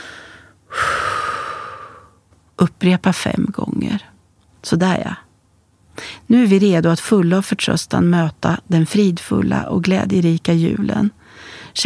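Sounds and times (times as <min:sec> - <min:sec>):
deep human breath in through the nose and out through the mouth: 0:00.0 - 0:02.2, 0:11.2 - 0:11.8
speech: 0:02.8 - 0:05.2, 0:06.3 - 0:11.8.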